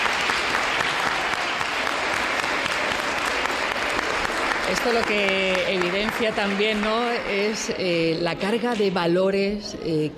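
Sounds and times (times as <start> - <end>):
audience applause: 0.0 - 7.8
speech: 4.7 - 10.1.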